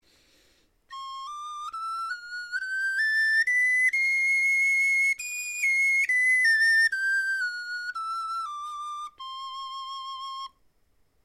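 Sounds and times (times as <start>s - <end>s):
bone flutes playing a scale: 0.9s - 10.6s.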